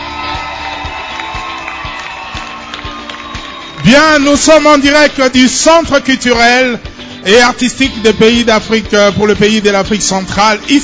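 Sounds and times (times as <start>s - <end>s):
audience applauding: 0.0s - 4.5s
speech: 3.9s - 10.8s.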